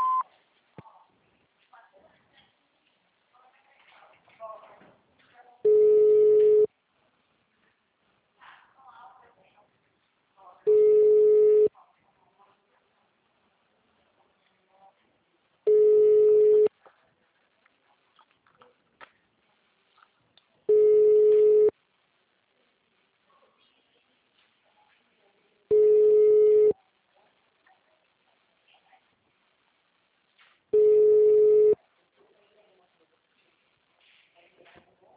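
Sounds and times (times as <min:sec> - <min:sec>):
electronic telephone tones from an automated phone menu: 0:00.0 - 0:00.2, 0:05.7 - 0:06.7, 0:10.7 - 0:11.7, 0:15.7 - 0:16.7, 0:20.7 - 0:21.7, 0:25.7 - 0:26.7, 0:30.8 - 0:31.8.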